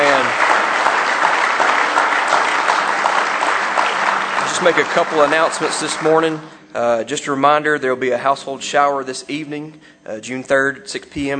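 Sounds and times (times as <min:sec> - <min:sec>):
audience clapping hands in praise: 0:00.0 - 0:06.6
speech: 0:04.6 - 0:11.3.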